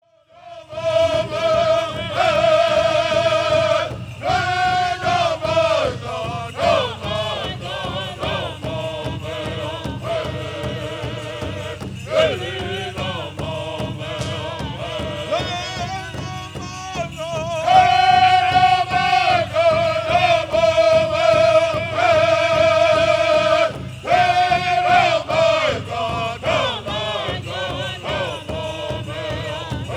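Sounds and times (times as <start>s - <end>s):
old Ponca war dance song: 0.7s - 29.9s.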